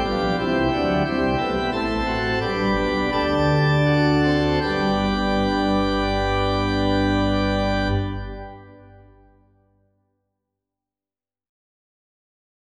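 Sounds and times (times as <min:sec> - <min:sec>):
organ: 0:00.0 - 0:09.6.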